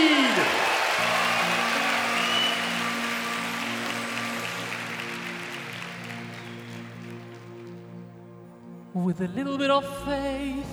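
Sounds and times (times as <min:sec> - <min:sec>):
audience applause: 0:00.0 - 0:08.4
speech: 0:09.0 - 0:10.7.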